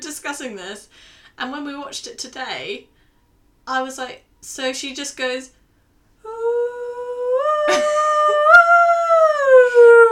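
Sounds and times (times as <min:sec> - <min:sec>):
speech: 0:00.3 - 0:03.0, 0:03.7 - 0:05.6
singer imitating wolf howls: 0:06.3 - 0:10.0.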